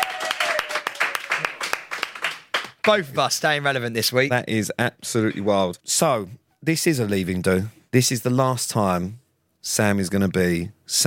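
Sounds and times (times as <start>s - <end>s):
round of applause: 0.0s - 3.1s
speech: 2.8s - 11.0s.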